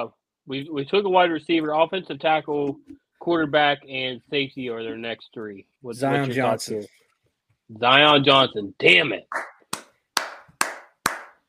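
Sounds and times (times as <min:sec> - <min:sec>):
speech: 0:00.0 - 0:07.0, 0:07.7 - 0:09.5
clapping: 0:09.3 - 0:11.4.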